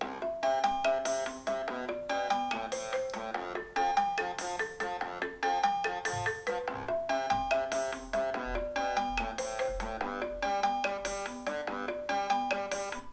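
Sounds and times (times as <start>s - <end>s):
ringtone: 0.0s - 13.1s.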